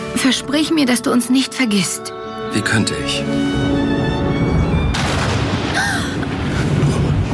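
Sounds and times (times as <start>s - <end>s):
speech: 0.2s - 3.8s
thunder from an approaching thunderstorm: 4.5s - 7.3s.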